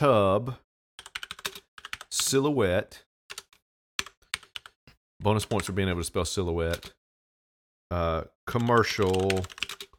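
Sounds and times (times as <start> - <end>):
speech: 0.0 - 0.7, 2.1 - 3.1, 5.2 - 7.0, 7.9 - 9.6
computer keyboard typing a search into Google: 1.0 - 2.2, 3.3 - 4.8, 8.5 - 9.9.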